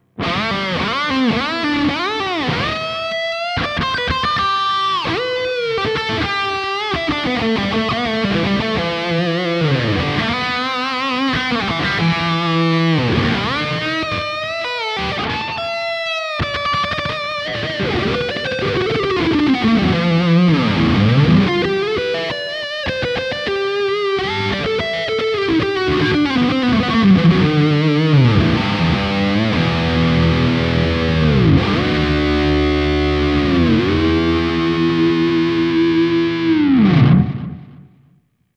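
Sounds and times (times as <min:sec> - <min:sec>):
Fusion T HH humbucker high-gain electric guitar lead: 0:00.0 - 0:38.2.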